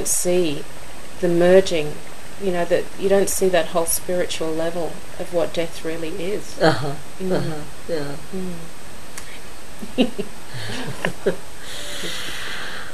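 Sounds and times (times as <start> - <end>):
speech: 0.0 - 8.8, 9.8 - 12.4
laughter: 9.8 - 12.8
deep breath: 10.5 - 10.9, 11.6 - 12.9.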